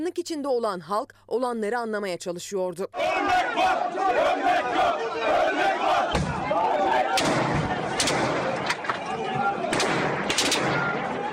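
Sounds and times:
speech: 0.0s - 7.5s
gunfire from a helicopter: 7.1s - 11.3s.

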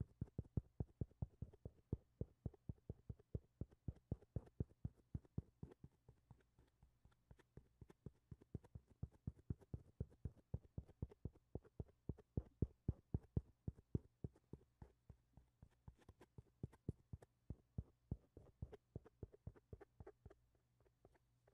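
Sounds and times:
fingers tapping and knocking on a microphone: 0.0s - 20.4s.

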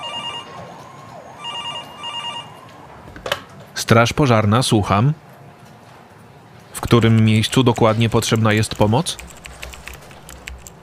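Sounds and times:
telephones ringing: 0.0s - 2.9s
speech: 3.8s - 5.2s, 6.9s - 9.4s.

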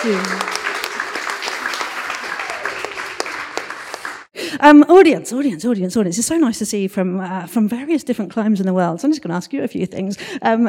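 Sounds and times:
speech: 0.0s - 0.6s, 4.6s - 10.6s
audience applause: 0.0s - 4.3s.

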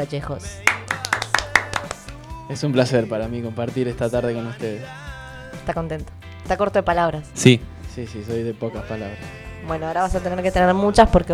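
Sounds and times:
speech: 0.0s - 0.9s, 2.5s - 11.3s
hand clapping in welcome: 0.6s - 3.0s
laughter: 0.6s - 3.5s.

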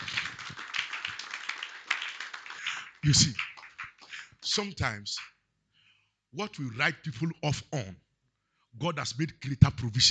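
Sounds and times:
audience clapping hands: 0.0s - 5.3s
speech: 3.0s - 3.5s, 4.4s - 5.3s, 6.3s - 8.0s, 8.7s - 10.1s.

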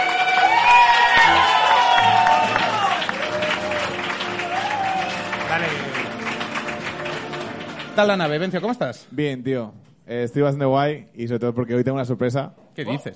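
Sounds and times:
audience cheering: 0.0s - 7.8s
audience applause: 0.0s - 8.8s
speech: 8.0s - 13.1s.

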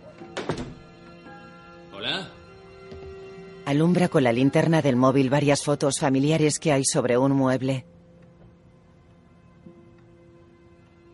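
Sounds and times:
door shutting with wood and latch: 0.1s - 1.0s
speech: 2.0s - 2.4s, 3.7s - 8.0s.

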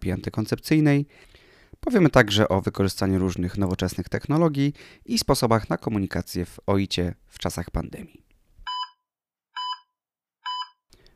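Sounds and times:
speech: 0.0s - 8.2s
medical device alarm beeping: 8.7s - 9.0s, 9.6s - 10.8s.

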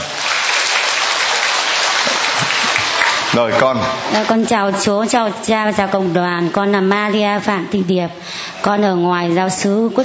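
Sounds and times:
audience applauding: 0.0s - 4.3s
speech: 3.4s - 10.0s.

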